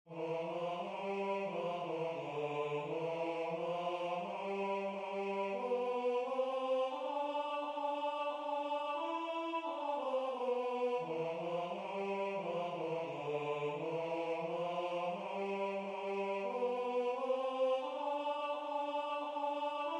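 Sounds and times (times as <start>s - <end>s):
tenor singing: 0.1s - 19.9s.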